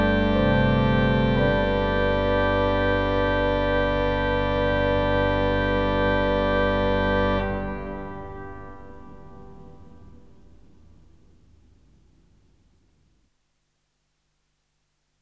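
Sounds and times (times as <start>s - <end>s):
organ playing chorale preludes: 0.0s - 11.0s.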